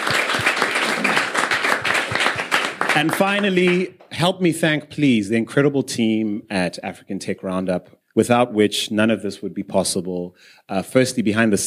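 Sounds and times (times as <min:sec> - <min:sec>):
crowd applauding: 0:00.0 - 0:03.9
speech: 0:03.0 - 0:11.6.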